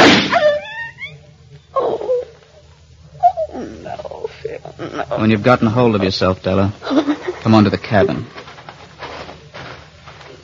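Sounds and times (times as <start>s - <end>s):
pistol gunshot: 0.0s - 0.4s
softer noises: 0.0s - 10.4s
speech: 5.0s - 8.4s.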